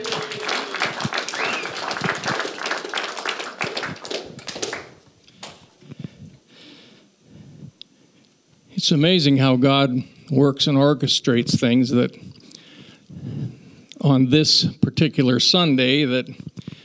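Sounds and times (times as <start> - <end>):
audience applause: 0.0 - 5.6
speech: 8.8 - 12.2, 14.1 - 16.5.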